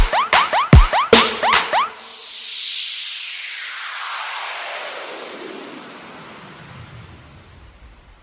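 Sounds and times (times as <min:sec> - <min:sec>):
trap beat: 0:00.0 - 0:02.5.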